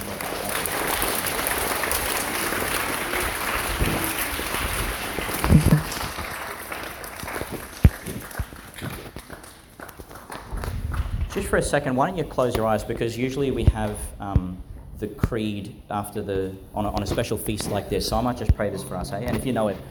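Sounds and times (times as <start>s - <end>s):
audience round of applause: 0.0s - 11.2s
speech: 11.5s - 19.8s.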